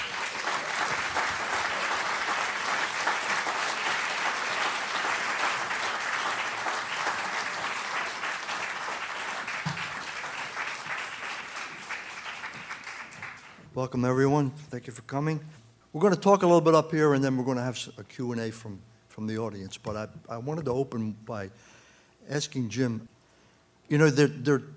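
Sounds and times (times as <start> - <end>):
audience applause welcoming two speakers: 0.0 - 13.6
speech: 13.8 - 23.1, 23.9 - 24.7.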